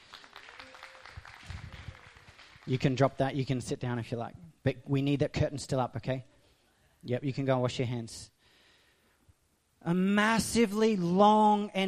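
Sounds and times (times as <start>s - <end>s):
audience applause: 0.0s - 3.0s
speech: 2.7s - 6.3s, 7.0s - 8.3s, 9.8s - 11.8s.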